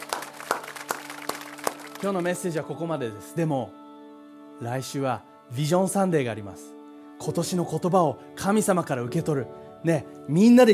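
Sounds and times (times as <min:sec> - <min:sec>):
audience applause: 0:00.0 - 0:02.5
speech: 0:02.0 - 0:03.8, 0:04.6 - 0:10.7.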